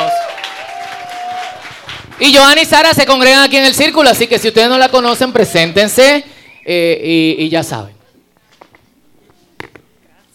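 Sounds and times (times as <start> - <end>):
audience applause: 0.0 - 2.4
speech: 2.2 - 8.0.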